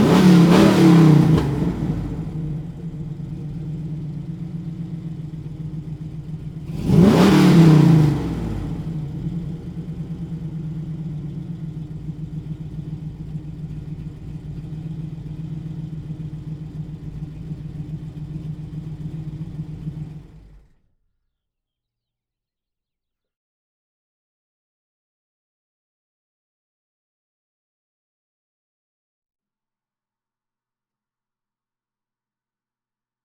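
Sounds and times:
1969 Pontiac Firebird engine starting: 0:00.0 - 0:20.8.

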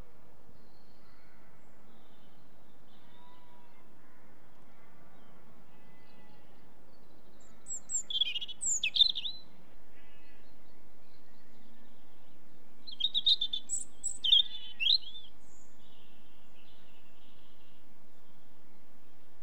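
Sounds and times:
robin: 0:07.4 - 0:12.0, 0:12.8 - 0:18.9.

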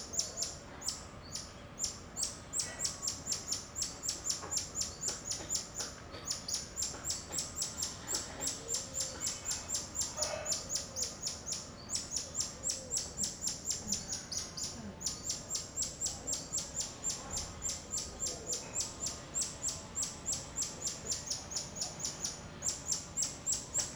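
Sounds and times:
birds in a Rio de Janeiro suburb: 0:00.0 - 0:23.9
dogs in a Rio de Janeiro suburb: 0:10.2 - 0:10.8.

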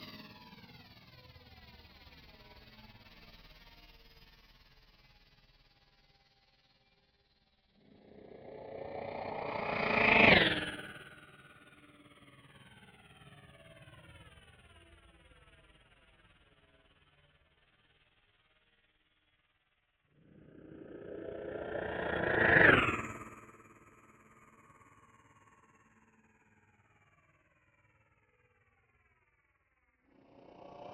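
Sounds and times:
heavy spaceship passing by: 0:07.8 - 0:11.0, 0:20.3 - 0:23.7, 0:30.2 - 0:30.9.

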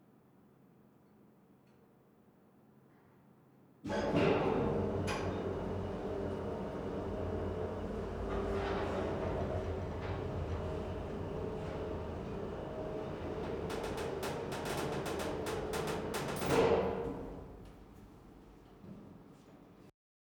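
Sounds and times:
cargo elevator moving up and down in an industrial hall: 0:03.9 - 0:19.9.

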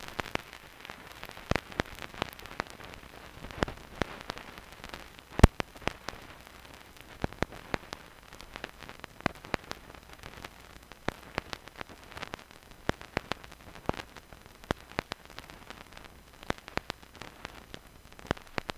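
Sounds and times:
vinyl crackle: 0:00.0 - 0:18.7.

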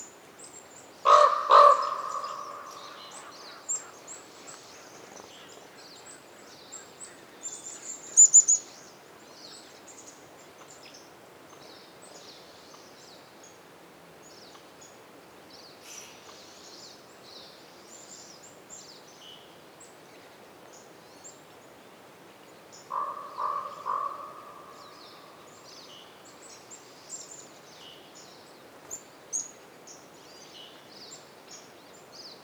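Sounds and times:
wind in a winter forest in Canada: 0:00.0 - 0:32.4
raven calls reverberating in a winter forest in Canada: 0:01.0 - 0:04.3, 0:22.9 - 0:25.9.

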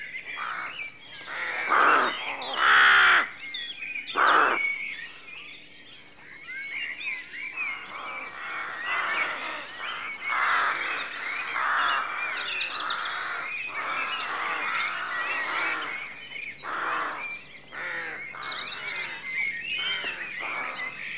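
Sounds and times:
rook cawing at a rookery at dawn in a rural setting: 0:00.4 - 0:03.4, 0:04.1 - 0:04.7, 0:07.9 - 0:20.9.

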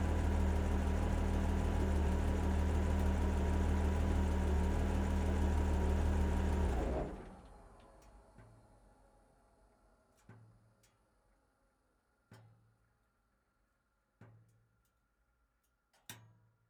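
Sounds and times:
onboard tank destroyer engine starting, idling, blipping and shutting off: 0:00.0 - 0:07.4.

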